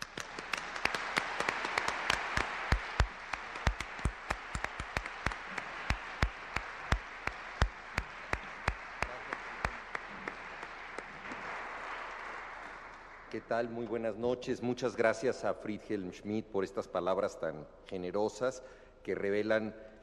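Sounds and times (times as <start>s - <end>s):
audience applause: 0.0s - 13.5s
speech: 13.4s - 20.0s.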